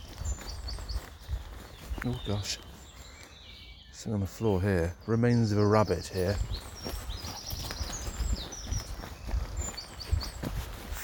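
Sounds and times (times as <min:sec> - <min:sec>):
footsteps at a walking pace: 0:00.0 - 0:03.2, 0:06.3 - 0:11.0
birds chirping outdoors: 0:00.0 - 0:11.0
speech: 0:02.0 - 0:02.7, 0:04.0 - 0:07.0.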